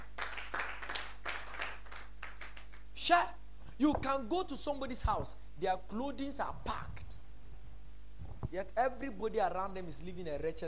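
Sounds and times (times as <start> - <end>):
audience clapping: 0.0 - 2.9
speech: 3.1 - 7.0, 8.5 - 10.6.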